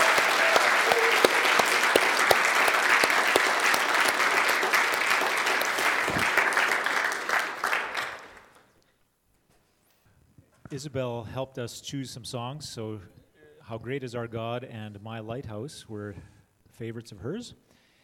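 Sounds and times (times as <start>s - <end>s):
audience cheering and whoops: 0.0s - 7.1s
audience applause: 0.0s - 8.6s
speech: 10.8s - 17.7s.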